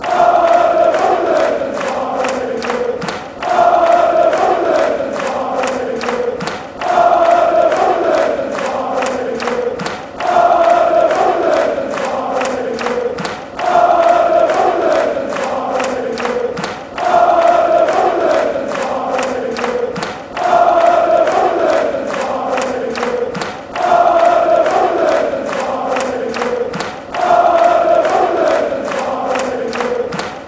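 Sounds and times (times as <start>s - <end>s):
football fans chanting: 0.0s - 30.4s.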